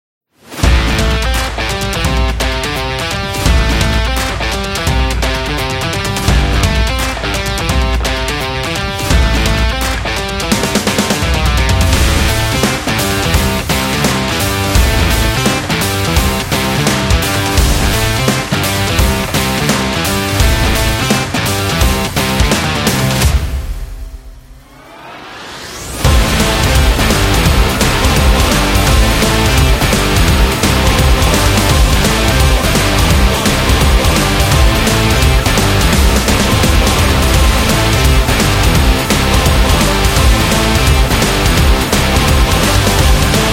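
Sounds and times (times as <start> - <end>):
action rock trailer music: 0.4 - 43.5.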